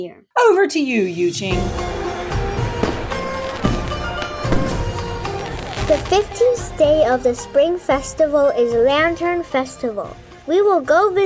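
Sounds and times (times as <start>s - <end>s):
speech: 0.0s - 2.0s, 5.9s - 11.2s
fireworks exploding: 1.8s - 8.0s.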